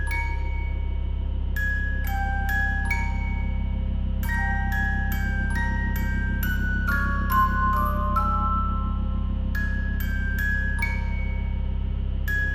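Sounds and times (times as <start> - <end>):
scary music: 0.0 - 12.5.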